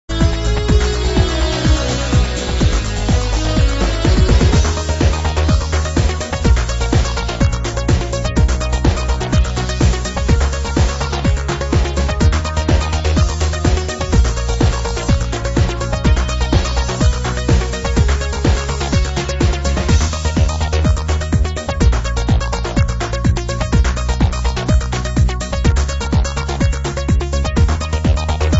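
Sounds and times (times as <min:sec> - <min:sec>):
groovy trancey gangsta jazz mix: 0:00.0 - 0:28.5.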